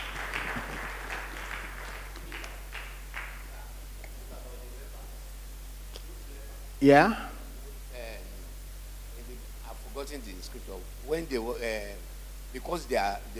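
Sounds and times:
crowd applauding: 0.0 - 4.3
steady low electrical hum: 0.0 - 13.3
speech: 6.8 - 7.3, 10.0 - 13.3.

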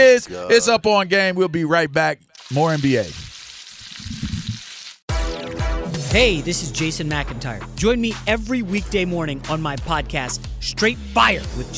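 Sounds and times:
speech: 0.0 - 3.3, 6.1 - 11.7
bacon crackling and sizzling in hot grease: 2.4 - 5.1.

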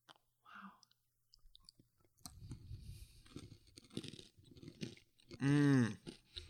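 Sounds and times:
chewing and soft crunching while tasting a food: 1.4 - 6.4.

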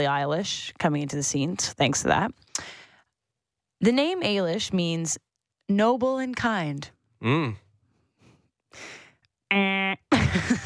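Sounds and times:
speech: 0.0 - 2.8, 3.8 - 7.6, 8.7 - 10.6
voice imitating a game-show buzzer: 9.5 - 10.1.

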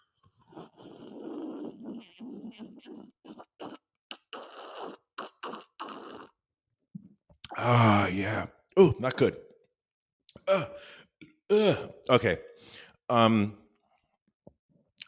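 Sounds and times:
person sipping a drink: 0.4 - 6.4
speech: 2.5 - 3.3, 7.6 - 9.4, 10.5 - 13.6.

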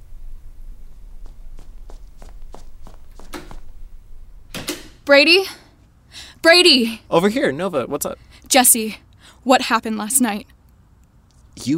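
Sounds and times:
footsteps of someone walking outside: 0.7 - 4.0
speech: 5.1 - 5.6, 6.4 - 10.5, 11.6 - 11.7.

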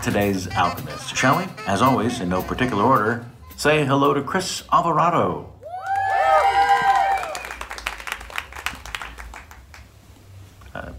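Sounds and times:
speech: 0.0 - 5.5
light audience applause: 5.6 - 10.0.

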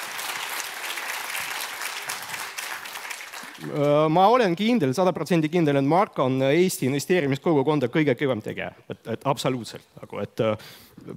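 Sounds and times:
audience applause: 0.0 - 4.1
speech: 3.6 - 11.1.

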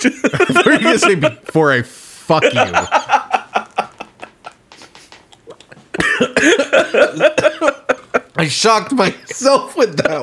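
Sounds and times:
laughter: 0.0 - 1.6, 2.2 - 10.2
speech: 0.0 - 3.0, 6.4 - 10.2
person coughing after choking on a sip of water: 5.8 - 8.2.

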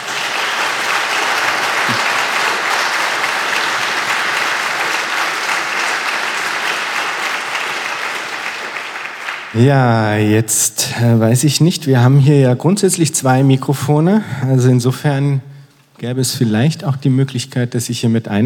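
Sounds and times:
audience applause: 0.0 - 9.6
speech: 9.6 - 18.4.

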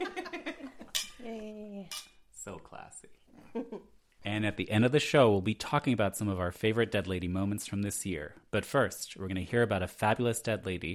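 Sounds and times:
glasses clinking in a toast: 0.8 - 1.3
speech: 2.5 - 10.9.

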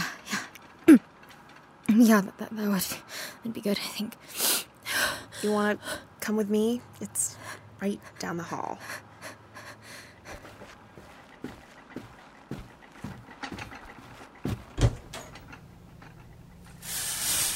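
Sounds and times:
speech: 2.0 - 4.4, 5.4 - 9.0
water pipes creaking as shower tap turns: 8.8 - 17.5.

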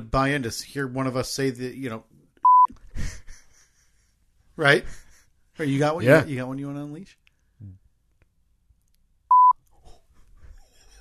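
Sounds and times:
speech: 0.1 - 2.1, 4.6 - 5.0, 5.6 - 7.8
censor beep: 2.4 - 2.7, 9.3 - 9.6.

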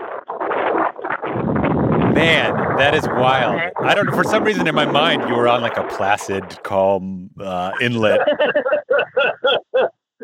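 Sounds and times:
storm wind around a boat: 1.2 - 6.8
laughter: 2.2 - 6.4, 7.4 - 10.2
speech: 2.2 - 9.9.

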